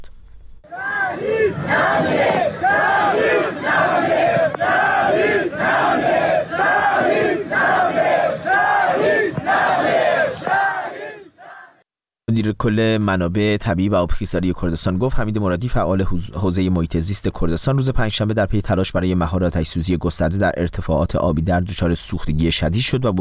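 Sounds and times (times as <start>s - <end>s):
crowd chanting slogans at a funeral: 0.6s - 11.8s
speech: 12.4s - 23.2s.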